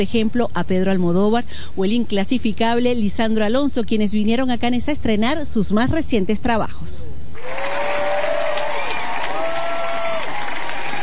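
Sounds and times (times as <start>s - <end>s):
speech: 0.0s - 7.8s
audience applause in a cinema hall: 7.4s - 11.0s.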